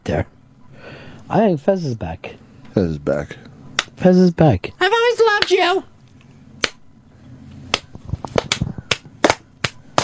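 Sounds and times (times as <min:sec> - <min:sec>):
speech: 0:00.1 - 0:05.9
slow clap: 0:07.7 - 0:10.0.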